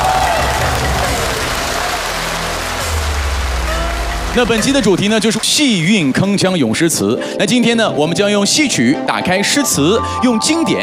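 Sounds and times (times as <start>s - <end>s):
audience applause: 0.0s - 6.9s
speech: 4.4s - 10.8s.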